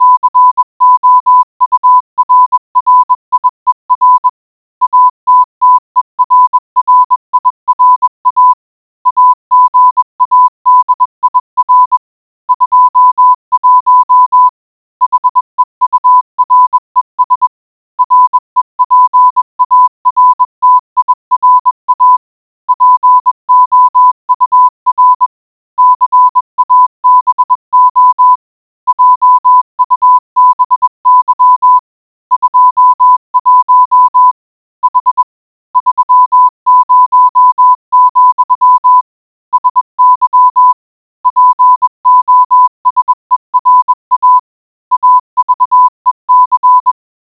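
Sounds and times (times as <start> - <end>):
morse code beeps: 0.0 - 47.0.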